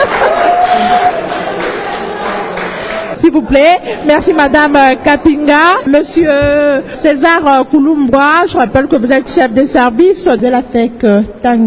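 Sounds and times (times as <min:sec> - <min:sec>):
audience applause: 0:00.0 - 0:03.2
speech: 0:03.3 - 0:11.6.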